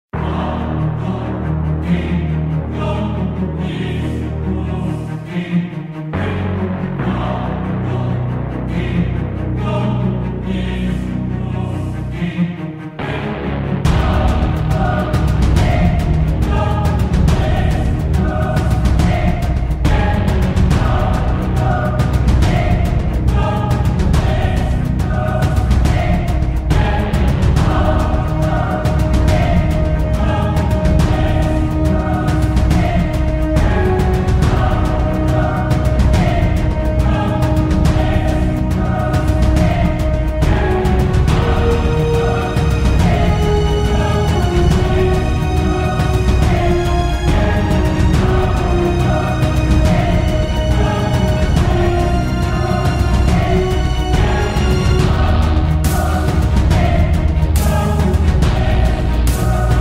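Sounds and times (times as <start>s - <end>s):
epic massive heroic action orchestral music with powerful choir: 0.0s - 59.7s.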